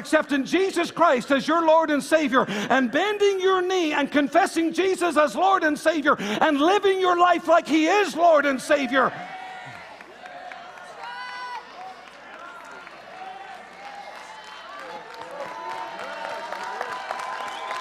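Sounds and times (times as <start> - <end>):
speech: 0.0 - 9.4
shouts and whoops: 8.9 - 17.7
audience clapping: 9.5 - 17.7.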